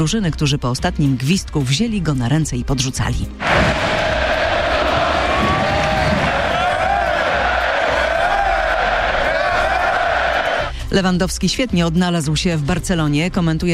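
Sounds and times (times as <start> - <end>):
speech: 0.0 - 4.2, 10.9 - 13.7
large stadium crowd cheering in ovation: 3.4 - 10.7.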